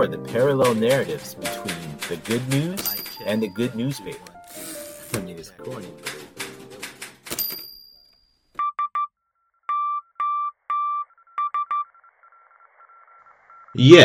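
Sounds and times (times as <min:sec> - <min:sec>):
speech: 0:00.0 - 0:04.3, 0:05.1 - 0:06.2, 0:13.8 - 0:14.0
SOS emergency Morse code beeping: 0:02.2 - 0:04.4, 0:08.6 - 0:09.1, 0:09.7 - 0:13.8.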